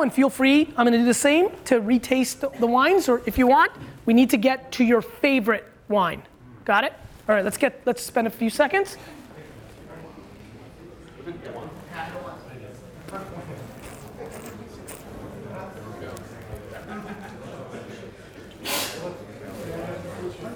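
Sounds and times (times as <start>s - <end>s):
speech: 0.0s - 9.2s
laughter: 16.6s - 18.6s
person sneezing: 18.6s - 19.0s.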